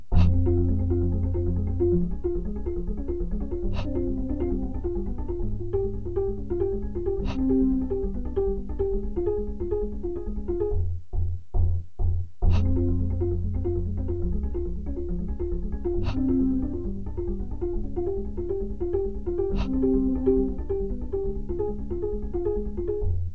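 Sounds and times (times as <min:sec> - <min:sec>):
harp: 0:00.1 - 0:10.9, 0:12.4 - 0:23.2.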